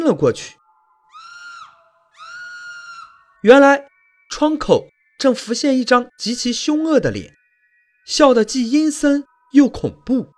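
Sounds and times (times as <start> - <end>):
speech: 0.0 - 0.6, 3.4 - 7.4, 8.0 - 10.3
woman screaming in fright: 1.0 - 3.4.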